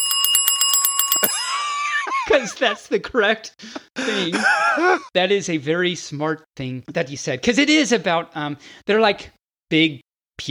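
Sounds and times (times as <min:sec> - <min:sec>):
ding ding ding bell sound effect: 0:00.0 - 0:01.8
laughter: 0:01.4 - 0:03.1, 0:04.0 - 0:05.1
speech: 0:02.3 - 0:10.4.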